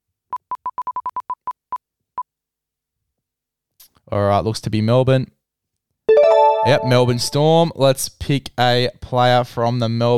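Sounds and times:
speech: 4.1 - 5.4, 6.6 - 10.1
prize wheel spinning: 6.1 - 7.5.

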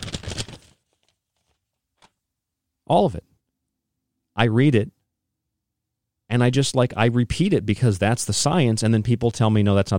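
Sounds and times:
paper being crumpled up: 0.0 - 2.2
speech: 2.9 - 3.3, 4.4 - 5.0, 6.3 - 9.9.

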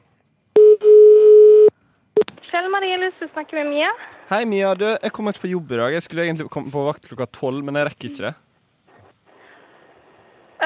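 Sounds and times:
telephone ringing tone during a call: 0.6 - 1.7
speech: 2.6 - 8.4.

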